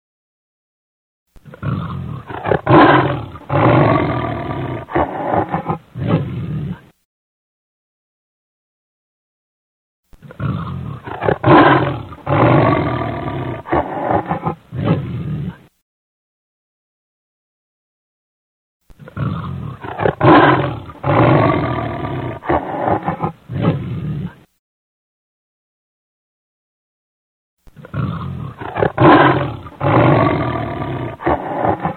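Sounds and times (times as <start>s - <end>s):
lion giving deep throaty roars: 1.4s - 6.9s, 10.2s - 15.7s, 19.0s - 24.5s, 27.7s - 31.9s.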